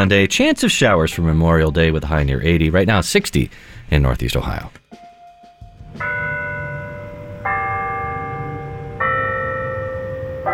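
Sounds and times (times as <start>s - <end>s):
speech: 0.0s - 4.8s
church bells ringing out the hour: 5.0s - 10.5s.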